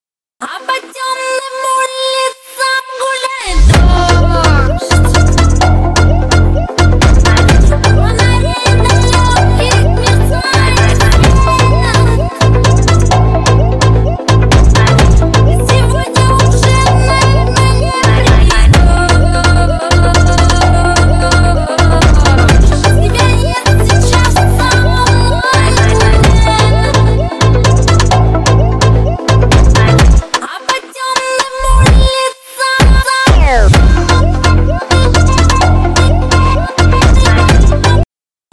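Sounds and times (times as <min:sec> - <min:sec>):
phonk remix: 0:00.4 - 0:38.0.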